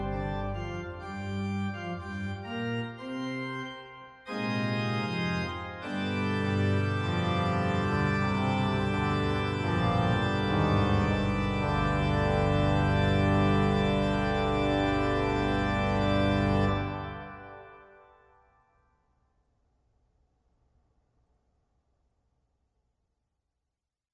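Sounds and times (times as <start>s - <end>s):
cornet and organ processional: 0.0s - 18.1s.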